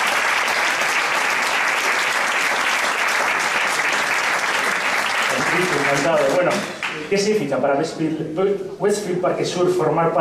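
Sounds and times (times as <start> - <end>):
applause: 0.0 - 7.1
speech: 5.9 - 10.2.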